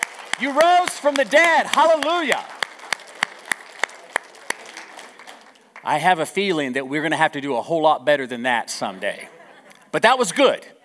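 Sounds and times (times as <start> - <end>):
audience clapping in a steady rhythm: 0.0 - 6.2
soft crowd noise: 0.0 - 10.8
speech: 0.4 - 2.5, 5.8 - 10.8
laughter: 8.8 - 10.8.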